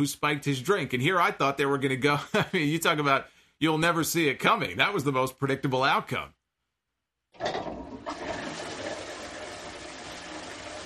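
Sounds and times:
speech: 0.0s - 6.4s
toilet flushing: 7.3s - 10.8s.

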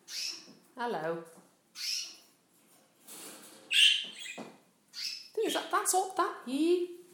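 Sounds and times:
canaries chirping: 0.0s - 0.7s, 1.7s - 2.4s, 3.5s - 5.7s
speech: 0.8s - 1.9s, 5.4s - 7.0s.

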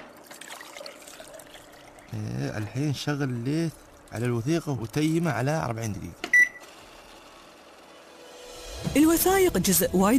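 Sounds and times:
water poured into powder mixture during paper document conservation: 0.2s - 5.6s
speech: 2.1s - 6.2s, 9.0s - 10.1s.

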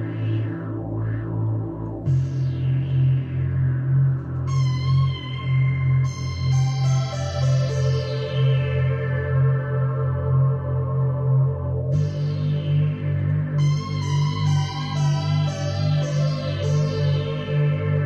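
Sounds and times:
tube synthesizer playing low notes and chords: 0.0s - 18.0s.

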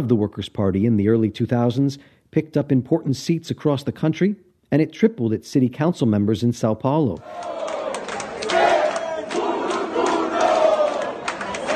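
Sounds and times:
speech: 0.0s - 7.7s
supporters cheering for PSOL mayoral candidate Guilherme Boulos in Sao Paulo: 7.2s - 11.7s.

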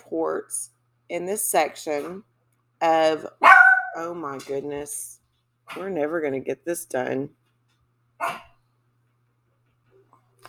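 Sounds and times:
speech: 0.1s - 7.4s, 8.2s - 8.5s
dogs barking: 3.4s - 4.0s, 8.2s - 8.5s.

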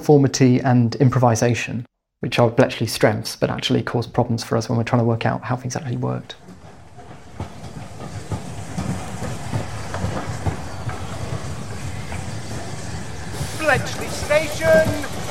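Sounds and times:
speech: 0.0s - 6.4s, 13.7s - 14.0s
train rumbling through a railway station: 3.4s - 15.2s.

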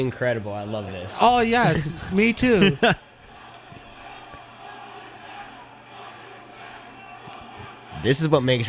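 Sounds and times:
speech: 0.0s - 3.1s, 8.0s - 8.6s
wrestling crowd chanting: 1.1s - 8.3s
laughter: 1.2s - 5.4s.

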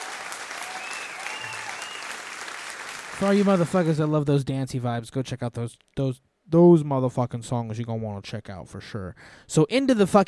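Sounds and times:
crowd applause: 0.0s - 4.1s
speech: 3.2s - 10.2s.

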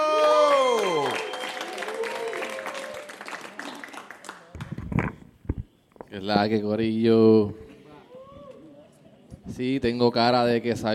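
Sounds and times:
audience applause: 0.1s - 4.8s
speech: 6.2s - 7.6s, 9.6s - 10.9s.

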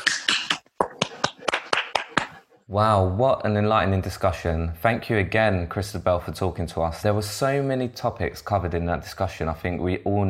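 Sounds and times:
participants on an online call clapping: 0.0s - 2.4s
speech: 2.7s - 10.2s.

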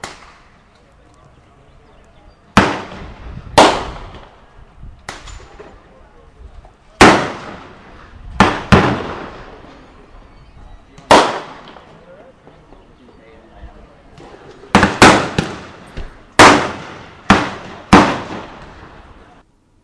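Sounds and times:
gunshots: 2.5s - 4.4s, 7.0s - 9.7s, 11.0s - 11.9s, 14.7s - 19.2s.

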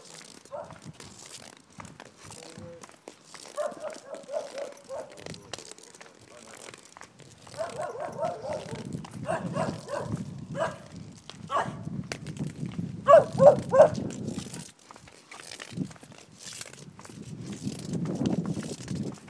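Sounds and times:
crinkling rustling noise: 0.0s - 19.2s
dog barking: 0.5s - 0.8s, 3.6s - 5.3s, 7.5s - 10.9s, 11.5s - 11.8s, 13.1s - 14.0s
steady wind rumble: 8.0s - 14.6s.

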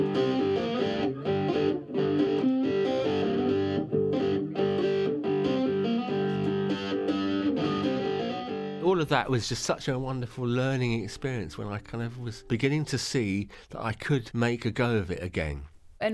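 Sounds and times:
loud electric guitar through amp turned full up: 0.0s - 8.8s
speech: 9.0s - 16.1s.

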